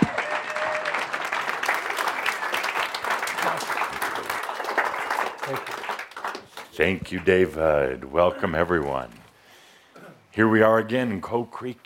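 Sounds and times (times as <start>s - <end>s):
large audience applause: 0.0s - 7.5s
speech: 5.5s - 5.8s, 6.8s - 9.2s, 10.4s - 11.8s.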